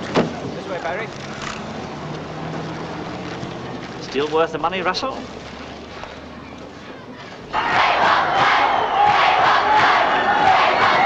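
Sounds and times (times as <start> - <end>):
speech: 0.8 - 1.5, 4.1 - 5.5
packed venue crowd cheering as band starts show: 7.3 - 11.0.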